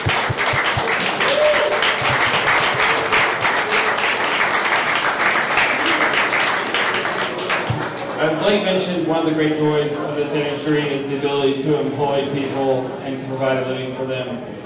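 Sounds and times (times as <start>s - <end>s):
crowd applause: 0.0s - 8.5s
speech: 8.5s - 14.6s.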